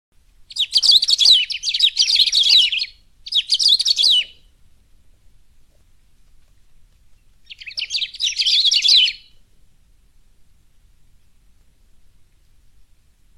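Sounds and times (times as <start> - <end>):
Saffron-billed sparrow singing rapid tangled twittering phrases: 0.5 - 4.5, 7.1 - 9.4.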